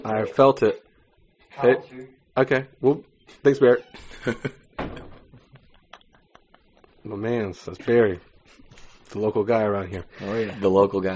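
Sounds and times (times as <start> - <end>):
speech: 0.0 - 0.9, 1.6 - 4.6, 7.0 - 8.3, 9.1 - 11.1
door opening: 4.8 - 5.4.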